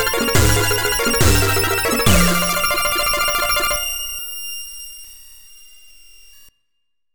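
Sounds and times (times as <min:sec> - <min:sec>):
8-bit stabs: 0:00.0 - 0:03.9.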